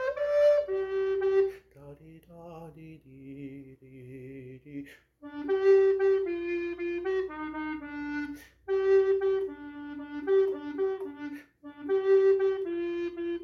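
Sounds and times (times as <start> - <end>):
recorder playing bass parts: 0.0 - 1.6, 5.2 - 13.4.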